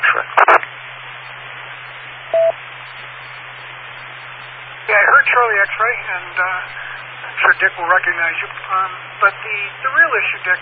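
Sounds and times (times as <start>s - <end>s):
band-limited hiss: 0.0s - 10.6s
low constant hum: 0.0s - 10.6s
radio transmission beep: 2.3s - 3.0s
speech: 4.9s - 6.8s, 7.4s - 10.6s.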